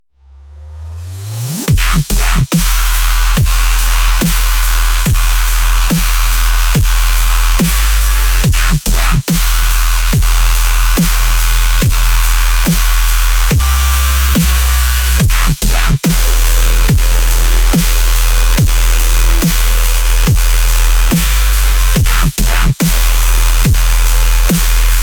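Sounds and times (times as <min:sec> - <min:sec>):
wobble madness bass: 0:00.0 - 0:25.0.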